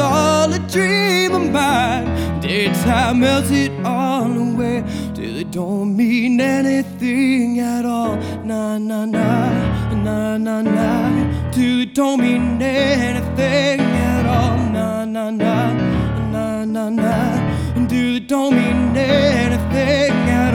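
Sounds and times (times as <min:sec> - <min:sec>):
male vocals: 0:00.0 - 0:20.5.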